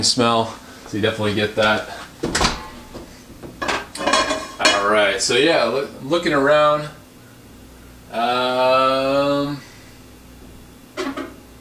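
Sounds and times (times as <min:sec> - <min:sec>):
speech: 0:00.0 - 0:02.5, 0:04.9 - 0:07.0, 0:08.1 - 0:09.7
microwave door opening: 0:02.2 - 0:03.0.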